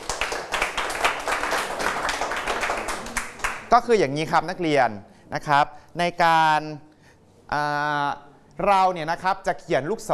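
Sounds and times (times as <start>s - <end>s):
group of students clapping hands: 0.0s - 3.7s
speech: 3.7s - 6.9s, 7.5s - 10.1s.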